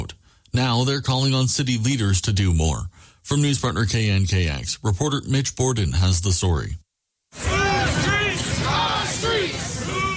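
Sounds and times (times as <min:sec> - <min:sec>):
speech: 0:00.5 - 0:07.4
large crowd of marchers shouting and chanting: 0:07.4 - 0:10.1.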